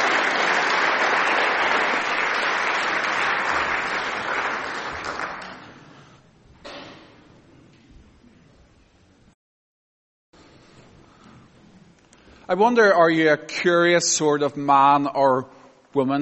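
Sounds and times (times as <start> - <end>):
audience applause: 0.0 - 6.0
speech: 12.5 - 16.1.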